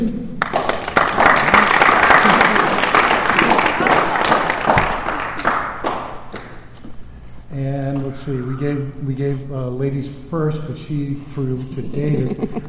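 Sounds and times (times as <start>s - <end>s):
audience clapping for a panel at an evening meeting: 0.4s - 6.7s
speech: 8.3s - 12.6s.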